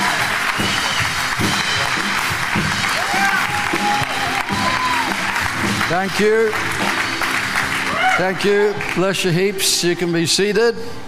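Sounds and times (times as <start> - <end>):
C3 Powerhouse church congregation applause welcoming pastor: 0.0 - 9.6
scattered whoops: 3.0 - 5.4, 7.9 - 8.2
speech: 5.9 - 6.8, 8.2 - 11.0.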